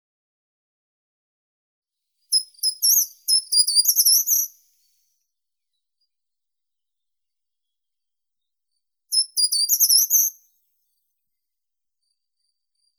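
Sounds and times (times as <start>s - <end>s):
short-toed treecreeper Certhia brachydactyla calling: 2.3s - 4.5s, 9.1s - 10.3s.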